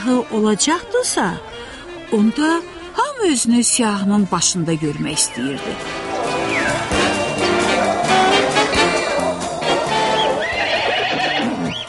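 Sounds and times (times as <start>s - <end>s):
speech: 0.0s - 6.2s
horse neighing: 5.9s - 11.8s.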